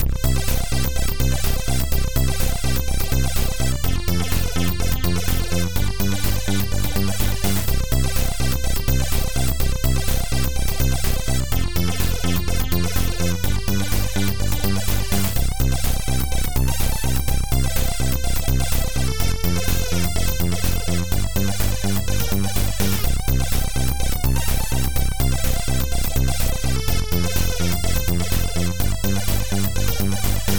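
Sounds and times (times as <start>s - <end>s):
synth: 0.0s - 30.5s.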